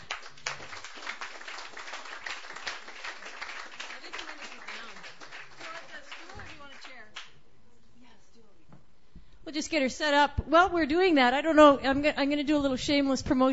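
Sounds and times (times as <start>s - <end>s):
audience applause at a Sunday night open mic: 0.0s - 7.2s
speech: 9.6s - 13.5s.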